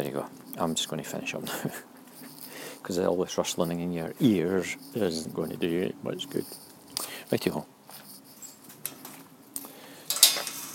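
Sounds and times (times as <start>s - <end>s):
speech: 0.0s - 1.9s, 2.8s - 6.6s, 7.3s - 7.7s
metal rear gate closing: 10.1s - 10.7s.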